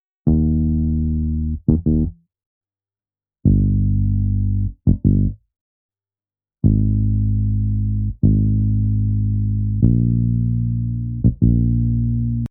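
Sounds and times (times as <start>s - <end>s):
bass: 0.2s - 2.3s, 3.4s - 5.5s, 6.6s - 12.4s.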